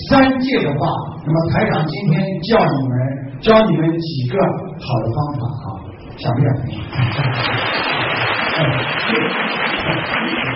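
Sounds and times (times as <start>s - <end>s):
speech: 0.2s - 7.9s, 8.6s - 10.5s
crowd applause: 7.0s - 10.5s.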